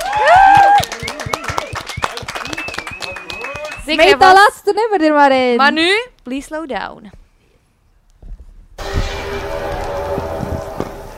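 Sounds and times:
hand clapping: 0:00.0 - 0:04.2
speech: 0:03.9 - 0:07.2.

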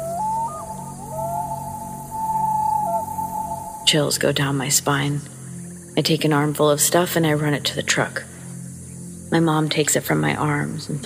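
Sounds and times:
loon call: 0:00.0 - 0:04.4
low steady hum: 0:00.0 - 0:11.0
speech: 0:03.9 - 0:05.4, 0:06.0 - 0:08.3, 0:09.3 - 0:11.0.

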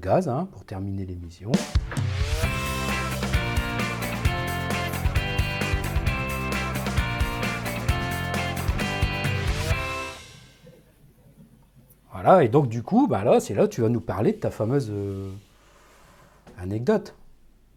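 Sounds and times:
speech: 0:00.0 - 0:02.6, 0:12.2 - 0:15.5, 0:16.6 - 0:17.2
radio jingle music for the questions segment of an aviation show: 0:01.6 - 0:10.3.

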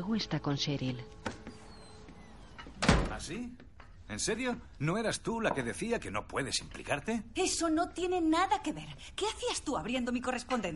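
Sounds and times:
speech: 0:00.0 - 0:01.4, 0:03.2 - 0:10.7
house door closing: 0:01.1 - 0:03.9.

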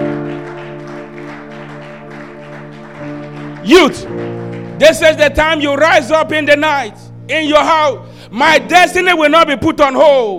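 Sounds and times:
audience clapping: 0:00.0 - 0:05.8
sustained held keyboard chord: 0:00.0 - 0:09.7
speech: 0:03.7 - 0:10.3.

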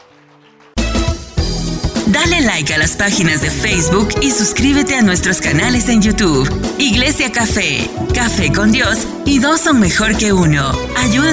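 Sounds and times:
audience applause: 0:00.0 - 0:00.9
speech: 0:02.2 - 0:11.3.

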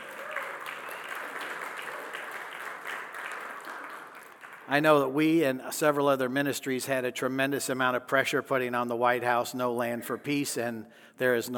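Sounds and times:
crowd clapping: 0:00.0 - 0:05.1
speech: 0:04.7 - 0:11.5.

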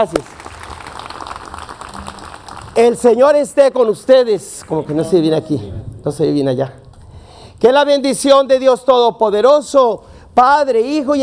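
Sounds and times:
speech: 0:00.0 - 0:00.4, 0:02.8 - 0:06.8, 0:07.6 - 0:11.2
crowd applauding: 0:00.0 - 0:03.8.

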